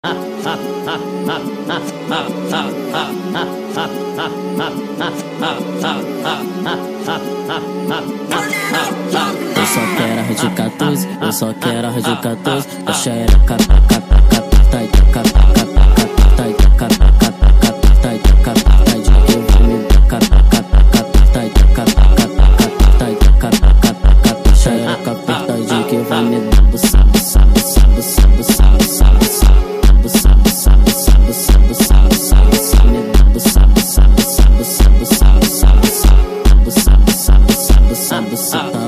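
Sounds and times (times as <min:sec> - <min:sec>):
sped up phonk funk music: 0:00.0 - 0:38.8.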